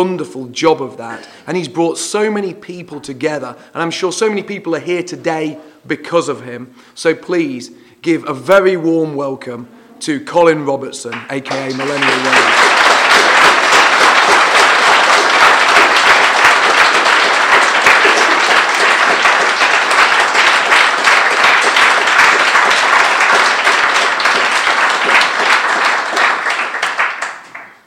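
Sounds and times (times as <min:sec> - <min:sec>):
speech: 0:00.0 - 0:12.7
audience applause welcoming a speaker at a gathering: 0:11.1 - 0:27.8.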